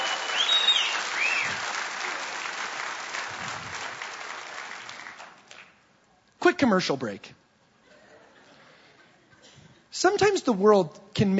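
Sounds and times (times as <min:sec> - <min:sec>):
audience applause: 0:00.0 - 0:05.7
speech: 0:06.5 - 0:07.4, 0:10.0 - 0:11.3.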